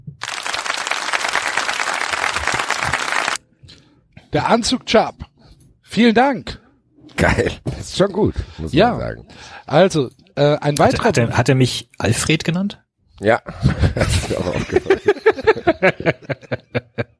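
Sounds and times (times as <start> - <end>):
applause, hands clapping: 0.2 - 3.4
speech: 4.3 - 5.3, 6.0 - 6.5, 7.2 - 16.6
laughter: 13.5 - 17.1.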